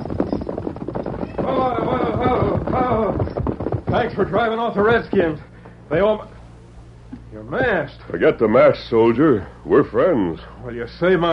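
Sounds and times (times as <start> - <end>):
horse Silver's hooves clattering as reined to a halt: 0.0 - 5.7
speech: 4.0 - 6.4, 7.3 - 11.3.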